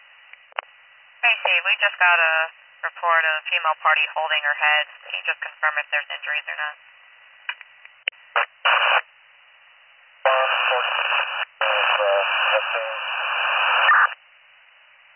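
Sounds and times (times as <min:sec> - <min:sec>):
radio static: 0:01.2 - 0:06.8, 0:08.3 - 0:09.0, 0:10.2 - 0:14.2
speech: 0:01.5 - 0:06.9.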